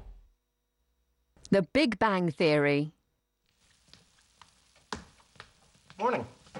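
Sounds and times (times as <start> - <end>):
speech: 1.5 - 3.0, 6.0 - 6.3
eggs sizzling as they fry in a pan: 3.4 - 6.5.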